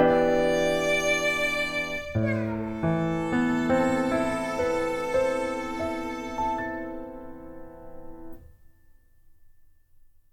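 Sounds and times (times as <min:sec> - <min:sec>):
sad violin: 0:00.0 - 0:08.1.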